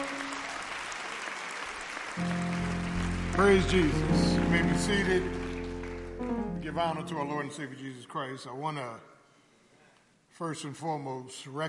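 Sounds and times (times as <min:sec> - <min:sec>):
audience clapping hands: 0:00.0 - 0:07.2
speech: 0:02.2 - 0:02.4, 0:03.3 - 0:05.4, 0:06.2 - 0:09.1, 0:10.4 - 0:11.6.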